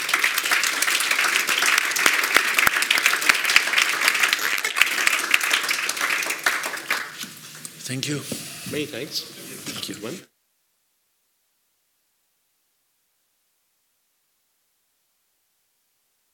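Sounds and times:
audience applause: 0.0s - 8.2s
speech: 7.9s - 10.3s.

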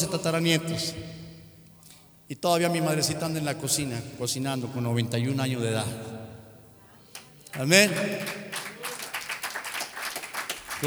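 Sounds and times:
speech: 0.0s - 1.2s, 2.3s - 6.3s, 7.6s - 8.5s
audience applause: 7.5s - 10.8s.

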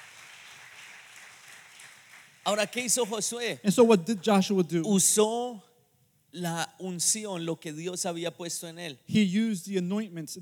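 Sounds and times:
audience applause: 0.0s - 3.2s
speech: 2.4s - 5.7s, 6.3s - 10.4s.

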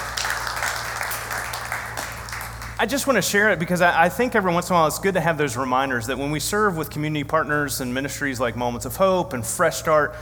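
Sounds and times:
audience clapping: 0.0s - 3.2s
speech: 2.8s - 10.2s.

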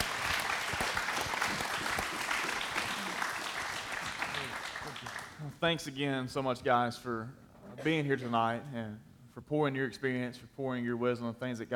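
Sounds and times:
audience applause: 0.0s - 5.4s
speech: 5.6s - 11.7s.

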